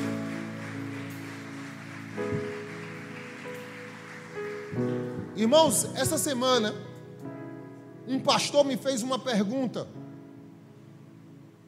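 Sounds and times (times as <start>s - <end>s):
audience applause: 0.0s - 6.0s
sustained keyboard chords: 0.0s - 11.6s
speech: 4.8s - 6.9s, 8.1s - 10.0s.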